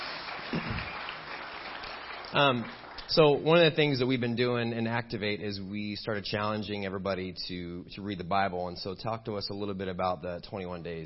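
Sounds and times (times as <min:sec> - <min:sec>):
audience clapping: 0:00.0 - 0:04.0
speech: 0:02.3 - 0:11.0.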